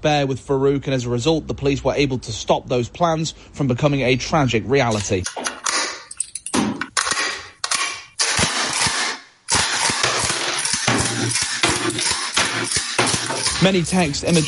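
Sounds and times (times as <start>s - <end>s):
speech: 0.0s - 5.6s, 13.6s - 14.4s
machine gun being loaded and cocked: 4.9s - 14.4s.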